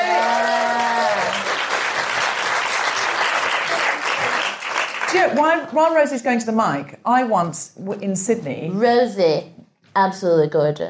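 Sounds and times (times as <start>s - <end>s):
vocal whoop: 0.0s - 1.5s
audience applause: 0.0s - 5.5s
speech: 5.2s - 10.8s.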